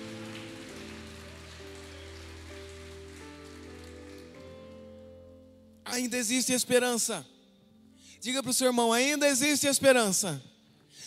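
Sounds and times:
audience applauding: 0:00.0 - 0:05.1
sustained keyboard chords: 0:00.0 - 0:06.0
speech: 0:05.9 - 0:07.3, 0:08.2 - 0:11.0.

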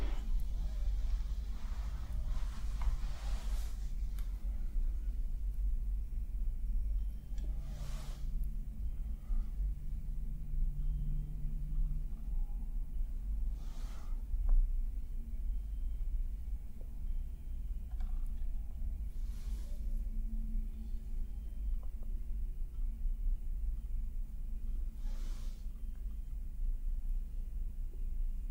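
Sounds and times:
face brushing and stroking: 0:00.0 - 0:04.7, 0:07.5 - 0:08.3
quiet rubbing sounds: 0:00.0 - 0:05.6, 0:07.2 - 0:09.7, 0:18.5 - 0:21.7
constant deep rumble: 0:00.0 - 0:28.4.

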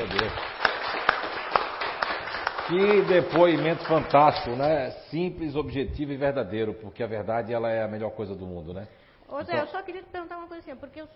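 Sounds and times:
audience applause: 0:00.0 - 0:04.5
speech: 0:02.7 - 0:11.1.

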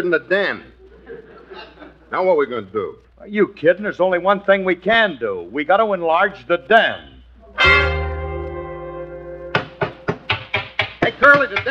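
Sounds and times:
speech: 0:00.0 - 0:00.7, 0:01.5 - 0:07.9, 0:11.2 - 0:11.6
laughter: 0:00.8 - 0:02.1
hammering: 0:09.5 - 0:11.6.

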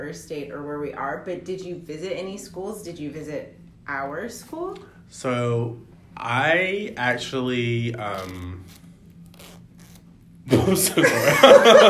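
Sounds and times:
speech: 0:00.0 - 0:08.8, 0:10.4 - 0:11.8
clothing zipper being fiddled with: 0:08.0 - 0:10.2
laughter: 0:10.7 - 0:11.8.

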